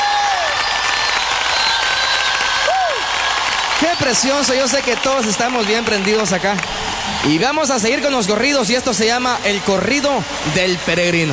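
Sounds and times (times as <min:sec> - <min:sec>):
stadium crowd applauding loudly: 0:00.0 - 0:11.3
speech: 0:04.0 - 0:11.3.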